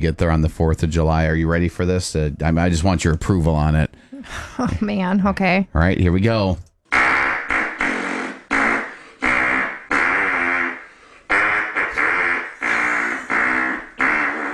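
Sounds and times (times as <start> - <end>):
speech: 0.0 - 6.7
hand farts playing the national anthem: 6.9 - 14.5.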